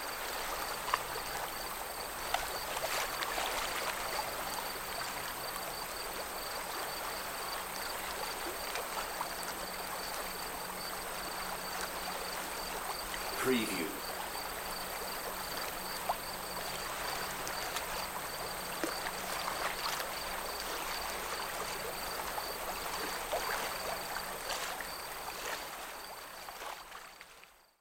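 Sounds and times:
waves at a rural harbor marina: 0.0 - 27.6
insects at a rural harbor marina: 0.0 - 27.7.

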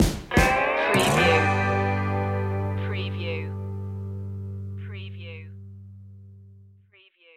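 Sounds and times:
upbeat music stinger: 0.8 - 4.8.

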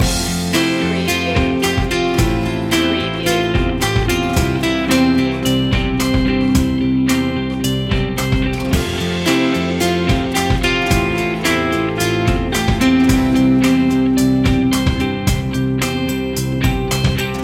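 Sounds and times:
quietly determined music loop: 0.0 - 17.4.

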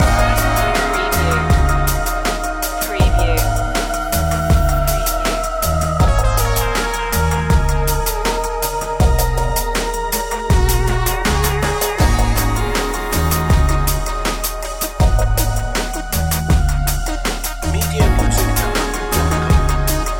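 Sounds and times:
music loop: 0.0 - 20.1.

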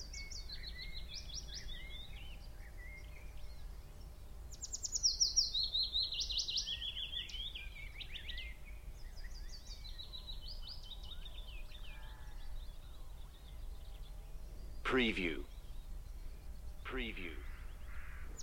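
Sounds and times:
birds twittering and trilling: 0.0 - 18.4
speech: 14.9 - 15.5, 16.9 - 17.5.

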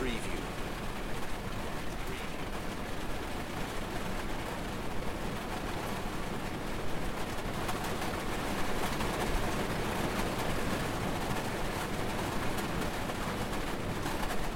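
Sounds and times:
heavy rain heard from inside a vehicle: 0.0 - 14.5.

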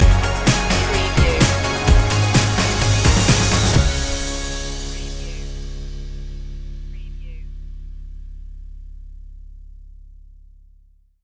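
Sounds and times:
hybrid throwback music stinger: 0.0 - 8.7.

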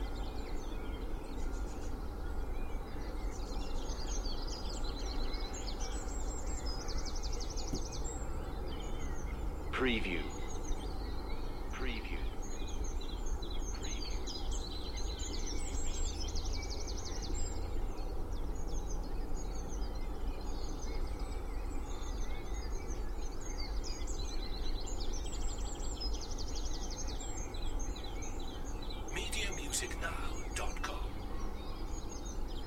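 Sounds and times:
spring dawn chorus in Cheshire UK: 0.0 - 32.6
noisy distant traffic noise in Cheshire UK: 29.0 - 31.6.

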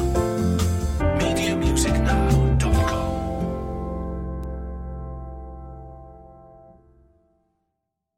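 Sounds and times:
latin music: 0.0 - 6.3.

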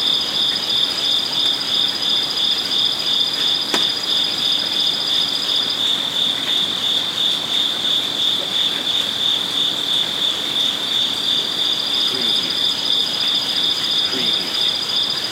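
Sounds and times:
crickets pulsing at night in a zen garden in Kyoto Japan: 0.0 - 15.3.

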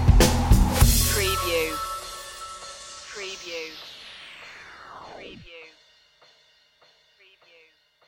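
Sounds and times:
electron stinger: 0.2 - 5.6.

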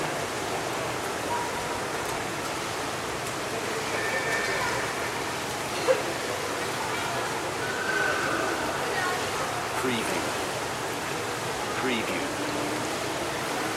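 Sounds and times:
public pool ambience: 0.0 - 13.7.

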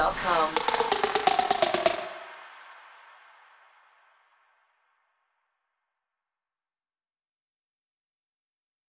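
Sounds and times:
hip trap underscore music: 0.6 - 2.2.

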